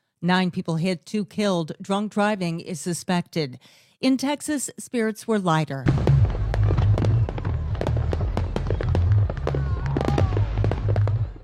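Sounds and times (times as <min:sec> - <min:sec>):
speech: 0:00.2 - 0:06.2
fireworks exploding over Austin: 0:05.8 - 0:11.4.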